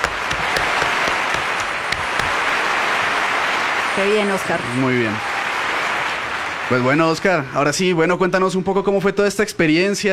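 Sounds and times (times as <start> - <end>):
applause: 0.0 - 8.0
speech: 4.0 - 5.3, 6.7 - 10.1.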